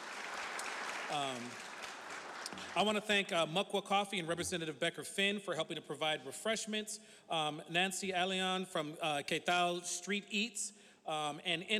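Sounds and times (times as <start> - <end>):
audience clapping: 0.0 - 3.0
speech: 1.1 - 1.7, 2.5 - 11.7.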